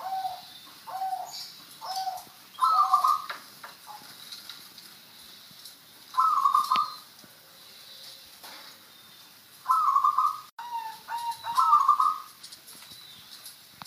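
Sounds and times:
zebra dove song: 0.0s - 4.1s, 6.2s - 7.1s, 9.7s - 12.4s.

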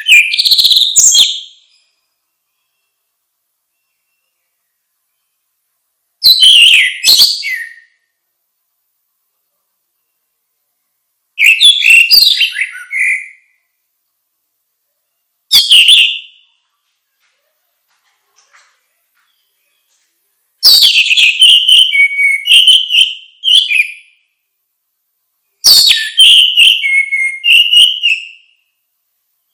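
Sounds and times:
orange-headed thrush song: 0.0s - 5.5s, 6.2s - 8.2s, 11.4s - 13.7s, 15.5s - 16.6s, 20.6s - 24.4s, 25.5s - 28.8s.

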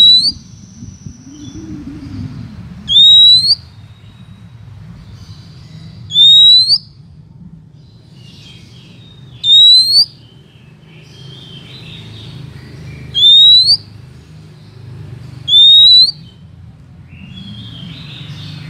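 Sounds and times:
Oriental magpie-robin rising whistle: 0.0s - 2.2s, 2.9s - 3.7s, 6.1s - 6.9s, 9.4s - 10.2s, 13.1s - 13.9s, 15.5s - 16.3s.

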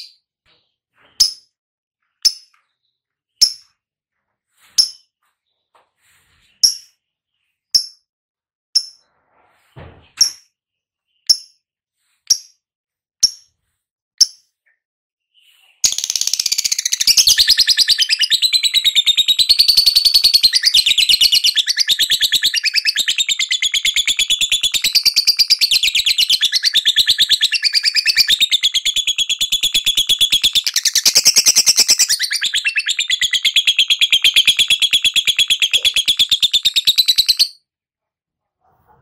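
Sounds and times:
lovebird ngekek chattering trill: 15.9s - 37.5s.

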